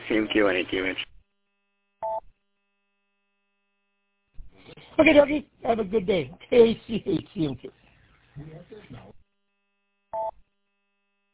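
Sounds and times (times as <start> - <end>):
speech: 0.1 - 1.1, 5.0 - 7.8, 8.4 - 9.2
timer alarm beep: 2.0 - 2.2, 10.1 - 10.4.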